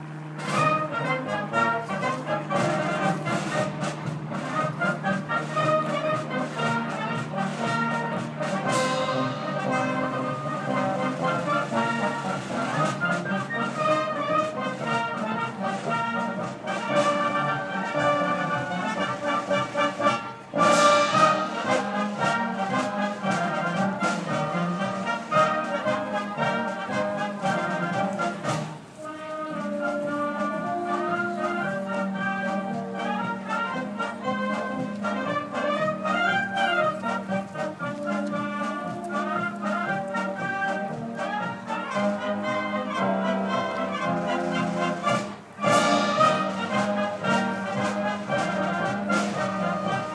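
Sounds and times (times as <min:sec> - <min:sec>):
symphony orchestra: 0:00.0 - 0:50.1.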